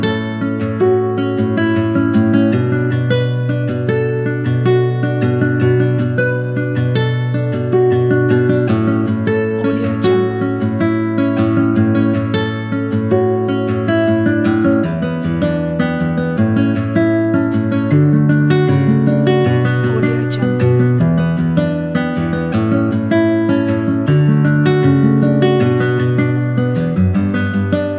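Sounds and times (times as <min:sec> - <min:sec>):
sad guitar: 0:00.0 - 0:27.9.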